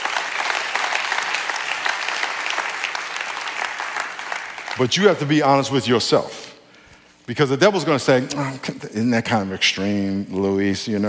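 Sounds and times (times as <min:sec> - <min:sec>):
people clapping: 0:00.0 - 0:05.4
speech: 0:04.8 - 0:06.4, 0:07.3 - 0:11.0.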